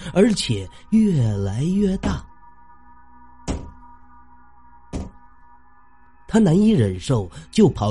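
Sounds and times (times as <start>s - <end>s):
speech: 0.2s - 2.3s, 6.3s - 7.9s
heavy dull knocking on a wall: 3.5s - 3.8s, 4.9s - 5.2s.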